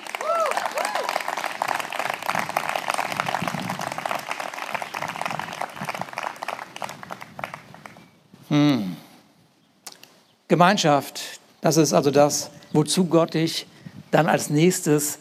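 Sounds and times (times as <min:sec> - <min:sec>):
audience applause: 0:00.0 - 0:07.9
speech: 0:08.5 - 0:08.9, 0:10.5 - 0:15.1.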